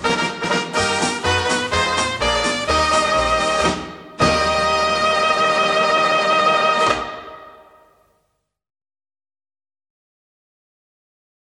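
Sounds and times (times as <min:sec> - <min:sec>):
banjo band playing: 0:00.0 - 0:07.5.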